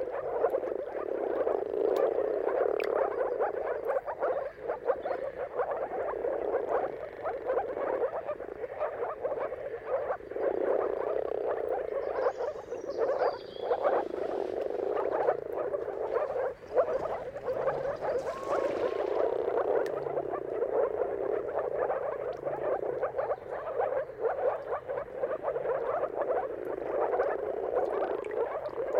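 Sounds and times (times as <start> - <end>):
moor frogs croaking in chorus: 0.0 - 28.9
bird whistling: 12.2 - 13.9, 17.7 - 19.0.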